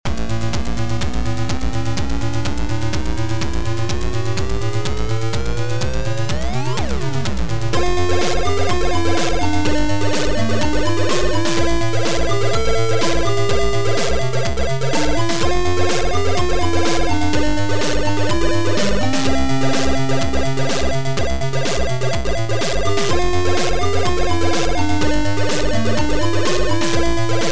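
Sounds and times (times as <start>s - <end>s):
Amiga chiptune music: 0.1s - 27.4s.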